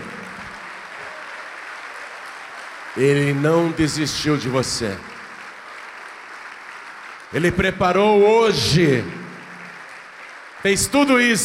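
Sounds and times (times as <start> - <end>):
audience applauding: 0.0 - 11.4
speech: 3.0 - 5.1, 7.3 - 9.2, 10.6 - 11.4.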